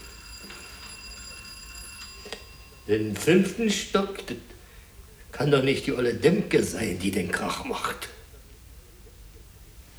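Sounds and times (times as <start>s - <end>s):
electric doorbell ringing: 0.0s - 4.6s
speech: 2.9s - 4.5s, 5.4s - 8.2s.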